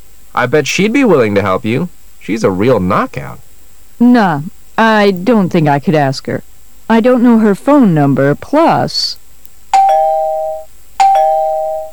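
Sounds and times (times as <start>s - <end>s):
speech: 0.4s - 9.2s
doorbell ringing: 9.8s - 11.9s.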